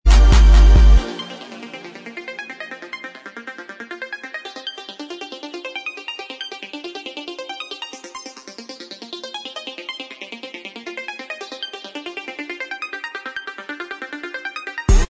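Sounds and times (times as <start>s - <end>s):
instrumental backing track: 0.1s - 3.4s.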